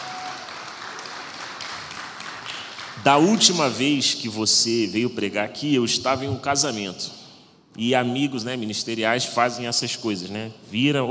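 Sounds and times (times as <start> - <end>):
church congregation applauding a guest preacher: 0.0 - 3.8
speech: 3.0 - 7.2, 7.8 - 11.0.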